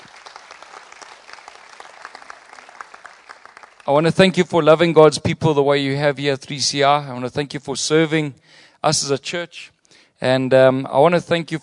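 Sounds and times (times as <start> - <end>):
audience applause welcoming a man at a church service: 0.0 - 4.1
speech: 3.9 - 11.6.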